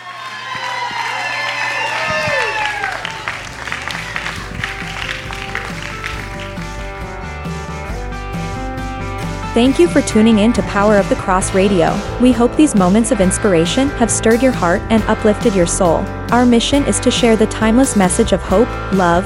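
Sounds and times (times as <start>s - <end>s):
voices shouting and whooping praise: 0.0s - 4.7s
crowd clapping: 0.0s - 7.3s
speech: 9.6s - 19.2s.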